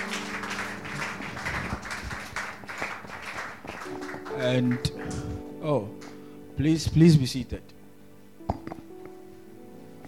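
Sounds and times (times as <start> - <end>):
church congregation clapping at a New Year's Eve watch night service: 0.0 - 5.4
speech: 4.4 - 5.0, 5.6 - 6.0, 6.6 - 7.7.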